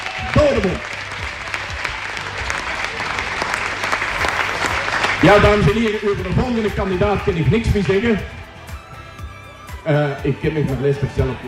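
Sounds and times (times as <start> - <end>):
audience applause: 0.0 - 8.8
speech: 0.5 - 1.0, 5.2 - 8.4, 9.8 - 11.4.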